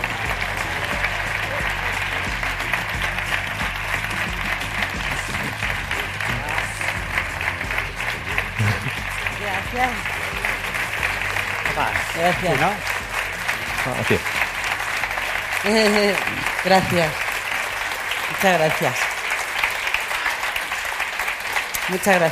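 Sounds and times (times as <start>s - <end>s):
laughter: 0.0s - 19.1s
audience applause: 0.0s - 22.2s
speech: 12.2s - 13.0s, 13.8s - 14.3s, 15.6s - 17.2s, 18.4s - 19.1s, 21.9s - 22.2s.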